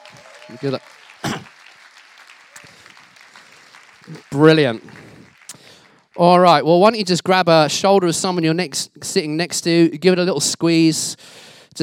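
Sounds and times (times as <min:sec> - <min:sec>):
audience clapping: 0:00.0 - 0:06.8
speech: 0:00.5 - 0:01.4, 0:04.1 - 0:05.0, 0:06.2 - 0:11.8.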